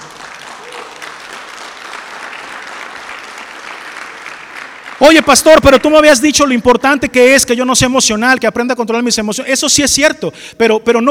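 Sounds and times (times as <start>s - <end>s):
audience applauding: 0.0s - 6.8s
speech: 5.0s - 11.1s.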